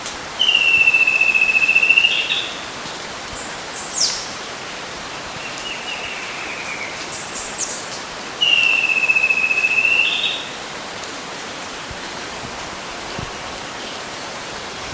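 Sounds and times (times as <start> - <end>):
background hiss: 0.0 - 14.9
bird long falling whistle: 0.4 - 2.5, 8.4 - 10.5
faint high bird calls: 0.4 - 2.7, 5.4 - 10.6.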